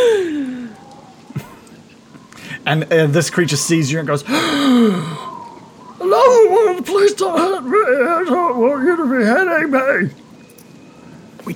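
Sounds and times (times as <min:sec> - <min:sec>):
person gasping in shock: 0:00.0 - 0:00.8, 0:04.3 - 0:05.5
speech: 0:02.7 - 0:05.2, 0:07.1 - 0:10.2.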